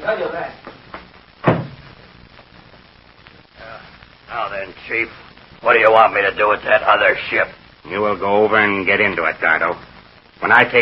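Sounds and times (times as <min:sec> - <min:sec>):
speech: 0:00.1 - 0:00.7, 0:04.6 - 0:10.7
door shutting: 0:01.4 - 0:01.8.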